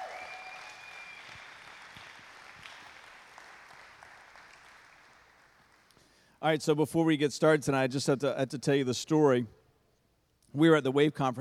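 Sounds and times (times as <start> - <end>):
church congregation applauding for the children: 0.0 - 6.0
speech: 6.4 - 9.6, 10.6 - 11.4.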